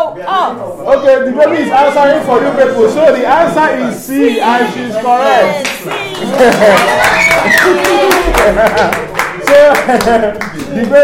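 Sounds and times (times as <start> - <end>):
speech: 0.2 - 11.0
laughter: 1.8 - 11.0
hand clapping: 5.6 - 11.0.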